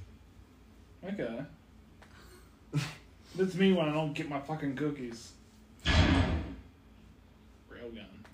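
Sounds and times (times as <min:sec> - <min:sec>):
speech: 0:01.2 - 0:01.6, 0:02.7 - 0:05.4
person imitating an assault rifle firing: 0:05.9 - 0:06.6.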